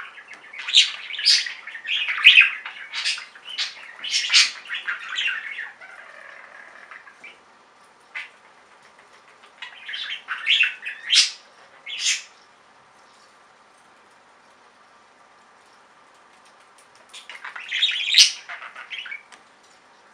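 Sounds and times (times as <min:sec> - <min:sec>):
budgerigar chattering: 0:00.0 - 0:07.4, 0:09.2 - 0:12.4, 0:17.1 - 0:19.3.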